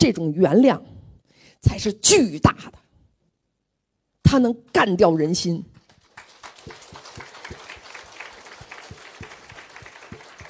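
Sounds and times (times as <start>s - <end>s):
speech: 0.1s - 0.9s, 1.6s - 2.8s, 4.2s - 5.8s
audience applause: 6.0s - 10.4s.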